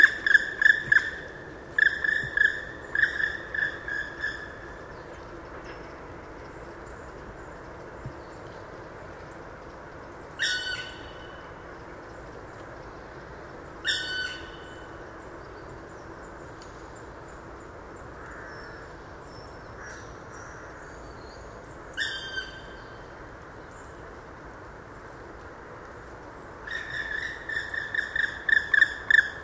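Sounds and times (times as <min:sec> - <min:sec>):
black woodpecker calling in a park garden in Landshut: 0:00.0 - 0:04.7, 0:10.4 - 0:11.3, 0:13.8 - 0:14.8, 0:26.6 - 0:29.4.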